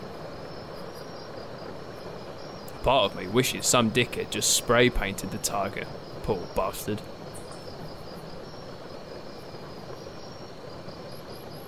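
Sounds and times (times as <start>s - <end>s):
rain hitting a tent: 0.0s - 11.6s
thin high insect trill: 0.0s - 11.6s
speech: 2.8s - 7.1s.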